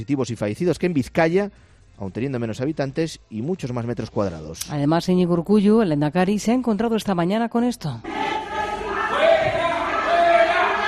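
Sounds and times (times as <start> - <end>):
speech: 0.0 - 8.3
hospital staff booing: 8.1 - 10.8.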